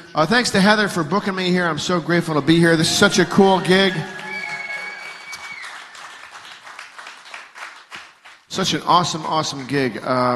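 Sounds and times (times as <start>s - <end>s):
speech: 0.1s - 4.2s, 8.6s - 10.3s
audience applause at a live gig: 3.1s - 9.9s.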